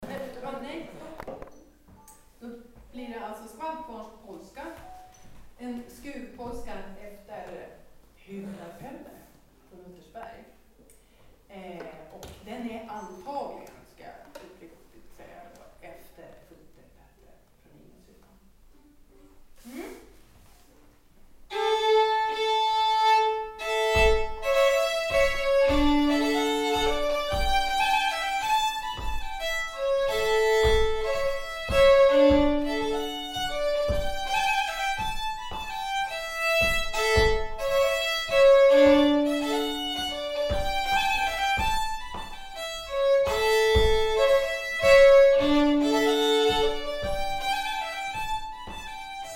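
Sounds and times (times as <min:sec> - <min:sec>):
polska folk tune: 0:21.5 - 0:49.3.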